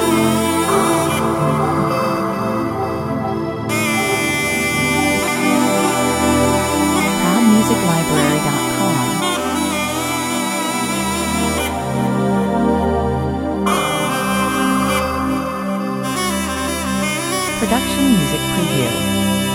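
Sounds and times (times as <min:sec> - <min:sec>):
Tunisian soundscape: 0:00.0 - 0:19.5.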